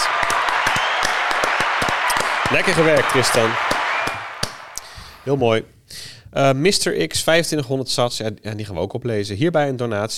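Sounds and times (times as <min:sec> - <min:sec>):
applause sound effect: 0:00.0 - 0:04.9
speech: 0:02.5 - 0:03.8, 0:05.2 - 0:10.1.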